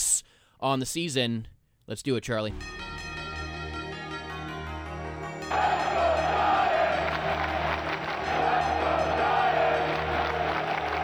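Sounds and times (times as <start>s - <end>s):
speech: 0.6s - 2.8s
stadium crowd cheering: 5.4s - 11.0s.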